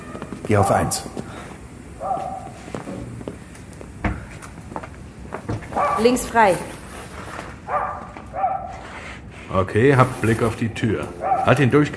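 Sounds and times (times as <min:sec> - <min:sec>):
speech: 0:00.5 - 0:01.3, 0:06.0 - 0:06.8, 0:09.5 - 0:11.9
dog barking: 0:02.0 - 0:02.6, 0:05.8 - 0:06.2, 0:07.7 - 0:08.8, 0:11.2 - 0:11.7.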